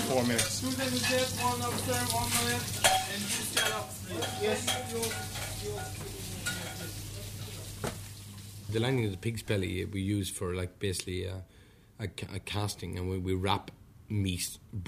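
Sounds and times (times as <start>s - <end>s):
light clinks of utensils: 0.0s - 7.0s
sweetbreads sizzling in a frying pan: 0.0s - 8.9s
speech: 0.1s - 6.2s, 8.7s - 14.8s
scraping stirs in a frying pan: 0.4s - 8.2s.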